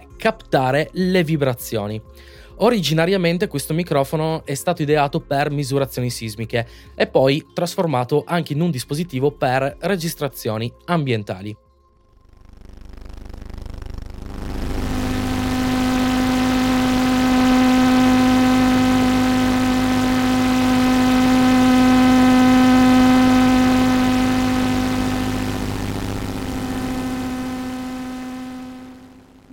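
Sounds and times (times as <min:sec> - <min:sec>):
speech: 0:00.2 - 0:11.6
electrical drone of electromagnetic interference from studio electronics: 0:12.2 - 0:29.5
faint high whine: 0:12.2 - 0:29.5.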